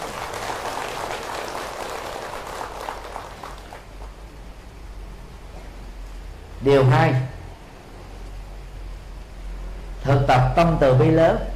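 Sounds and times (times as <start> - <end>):
audience applause: 0.0 - 4.2
speech: 6.6 - 7.3, 10.1 - 11.5.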